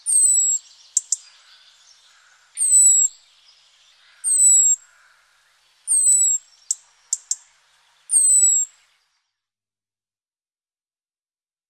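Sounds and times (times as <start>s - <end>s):
European robin singing: 0.0s - 9.4s.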